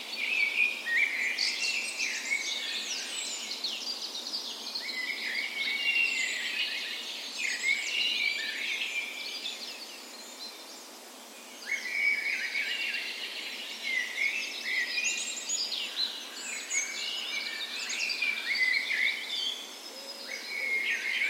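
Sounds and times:
dawn chorus of many birds: 0:00.0 - 0:21.2.

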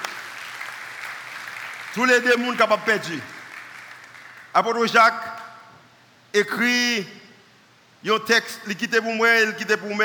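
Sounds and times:
crowd applause: 0:00.0 - 0:02.6, 0:03.2 - 0:04.5
speech: 0:02.0 - 0:03.4, 0:04.5 - 0:05.4, 0:06.3 - 0:07.2, 0:08.0 - 0:10.0.

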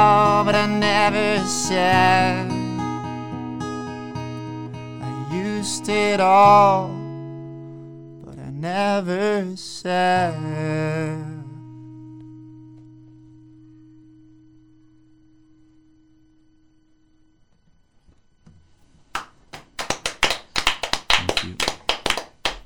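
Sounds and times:
speech: 0:00.5 - 0:02.6, 0:05.6 - 0:07.0, 0:08.6 - 0:11.3
slow clapping: 0:19.1 - 0:22.6.

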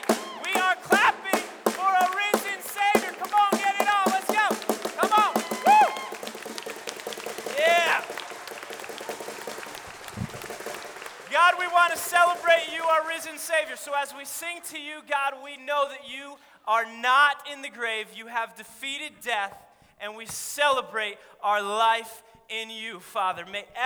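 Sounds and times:
audience clapping along rhythmically: 0:00.0 - 0:13.4
speech: 0:14.0 - 0:23.8.

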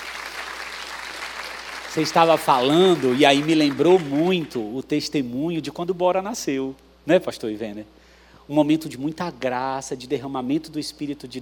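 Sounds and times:
audience applause: 0:00.0 - 0:04.5
speech: 0:02.0 - 0:11.4.

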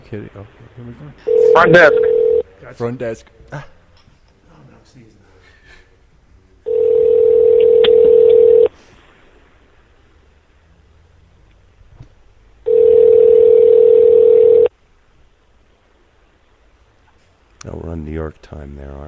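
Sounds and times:
speech: 0:00.1 - 0:03.8, 0:04.9 - 0:05.2, 0:17.6 - 0:19.0
telephone line tone during a call transfer: 0:01.2 - 0:02.5, 0:06.7 - 0:08.7, 0:12.7 - 0:14.7.

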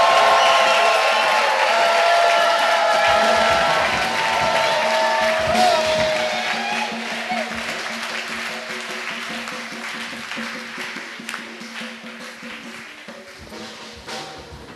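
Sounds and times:
crowd shouts of joy: 0:00.0 - 0:08.0
audience clapping: 0:00.0 - 0:14.2.

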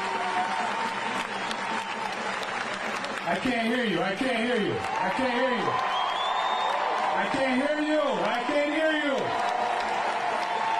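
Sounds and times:
crowd applauding: 0:00.0 - 0:10.7
speech: 0:03.3 - 0:05.9, 0:07.2 - 0:09.4.

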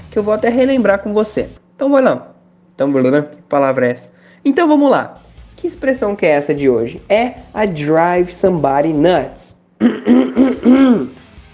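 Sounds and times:
speech: 0:00.2 - 0:11.1
throat clearing: 0:09.8 - 0:11.2.

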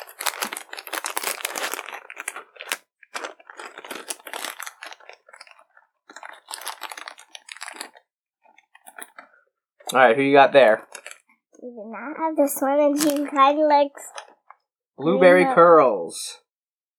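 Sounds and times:
plastic packaging of a toy package with pony figures tearing: 0:00.0 - 0:08.0, 0:10.7 - 0:11.2, 0:13.0 - 0:13.4
speech: 0:09.9 - 0:10.9, 0:11.7 - 0:14.2, 0:15.0 - 0:16.4.

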